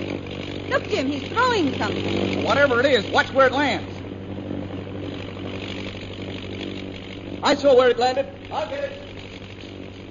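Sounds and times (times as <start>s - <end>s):
propeller airplane engine droning: 0.0s - 10.0s
speech: 0.7s - 3.9s, 7.4s - 9.0s.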